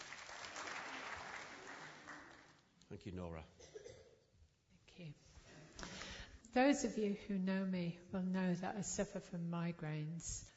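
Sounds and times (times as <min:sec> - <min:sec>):
audience applause: 0:00.0 - 0:02.6
speech: 0:02.9 - 0:03.8, 0:05.0 - 0:05.9, 0:06.5 - 0:10.5.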